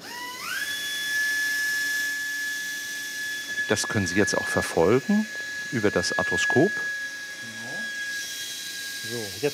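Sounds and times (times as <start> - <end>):
surgical drill boring into joint socket bone: 0.0 - 9.5
speech: 3.7 - 7.0, 9.1 - 9.5.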